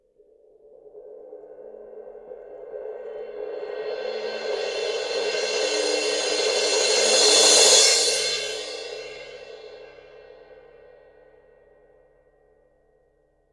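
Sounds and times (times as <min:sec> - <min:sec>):
suspended cymbal roll: 0:01.4 - 0:11.5.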